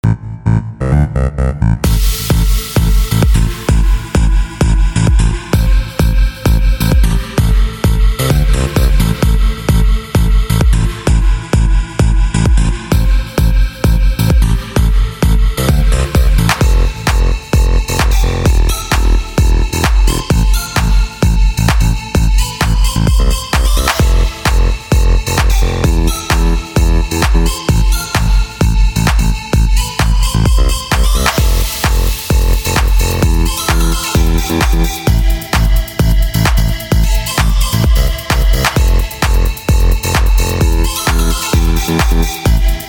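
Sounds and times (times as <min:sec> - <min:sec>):
instrumental club melody without words: 0:00.5 - 0:42.8.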